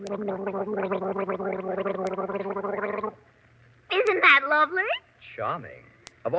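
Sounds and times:
person imitating a nightingale's song: 0.0 - 3.2
speech: 0.0 - 3.3, 4.0 - 6.3.

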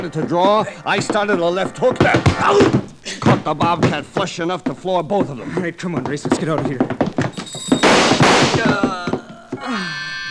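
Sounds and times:
speech: 0.0 - 7.0
gunshots fired from a car: 7.7 - 8.9.

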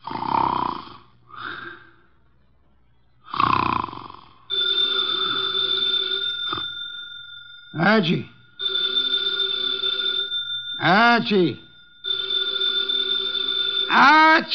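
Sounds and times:
man snoring through his nose: 0.0 - 2.0, 3.2 - 4.5
telephone ringing: 4.4 - 14.5
speech: 7.9 - 8.3, 10.8 - 11.6, 14.0 - 14.5.

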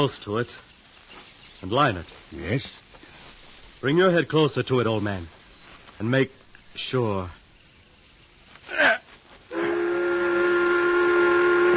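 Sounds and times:
speech: 0.0 - 0.7, 1.6 - 2.8, 3.8 - 5.4, 6.0 - 7.4
midday work whistle blowing: 9.5 - 11.7.

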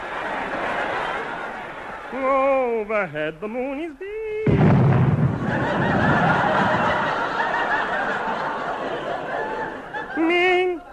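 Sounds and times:
laughter: 0.0 - 2.9, 5.2 - 10.9
speech: 2.1 - 4.1
car blowing a gasket, loud bang: 4.4 - 7.5.

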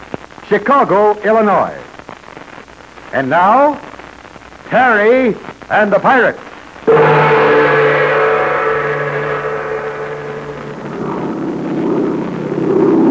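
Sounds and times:
speech: 0.5 - 1.9, 3.1 - 3.9, 4.7 - 6.5
plane engine droning at night: 6.9 - 13.0.

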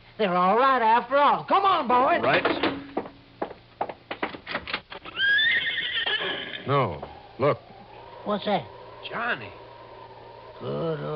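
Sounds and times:
speech: 0.2 - 2.7, 6.7 - 9.6, 10.6 - 11.1
horse neighing: 5.0 - 11.1.

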